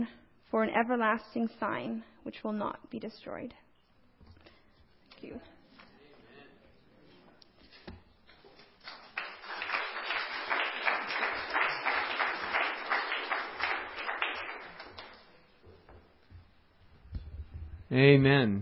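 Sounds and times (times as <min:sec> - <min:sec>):
speech: 0:00.0 - 0:03.6, 0:05.2 - 0:05.6, 0:17.9 - 0:18.6
audience applause: 0:09.0 - 0:15.3.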